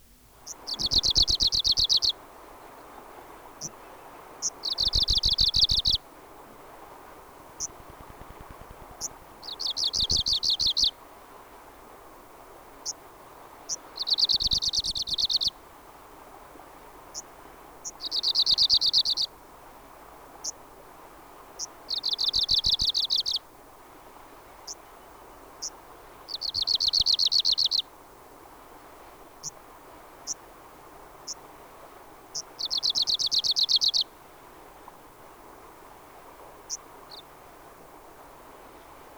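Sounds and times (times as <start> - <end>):
Arctic warbler song trills: 0.4 - 6.0, 7.5 - 11.0, 13.7 - 15.6, 17.1 - 19.3, 21.6 - 23.4, 24.6 - 27.9, 32.3 - 34.1, 36.6 - 37.4.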